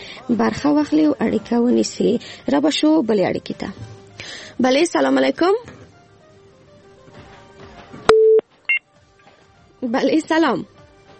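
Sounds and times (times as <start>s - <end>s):
speech: 0.3s - 5.8s, 9.8s - 10.7s
steady low telephone tone: 8.1s - 8.4s
brief higher two-tone telephone beep: 8.1s - 8.8s.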